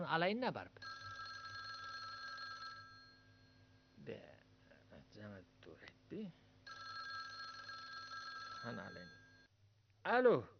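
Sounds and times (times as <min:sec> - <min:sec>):
speech: 0:00.0 - 0:00.9, 0:04.0 - 0:04.3, 0:05.2 - 0:06.4, 0:08.6 - 0:09.2, 0:10.0 - 0:10.5
telephone ringing: 0:00.8 - 0:03.6, 0:06.7 - 0:09.5.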